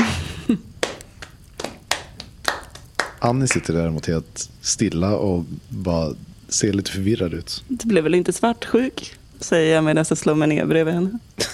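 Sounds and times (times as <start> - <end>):
slow applause: 0.0 - 3.8
speech: 0.5 - 0.7, 3.2 - 11.5.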